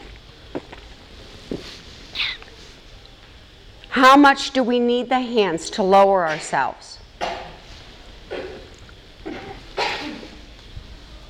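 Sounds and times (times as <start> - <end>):
speech: 4.0 - 7.0
person sneezing: 9.3 - 10.4.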